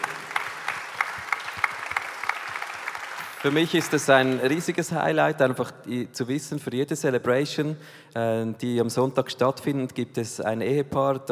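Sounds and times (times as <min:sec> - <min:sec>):
audience applause: 0:00.0 - 0:04.8
speech: 0:03.4 - 0:11.3.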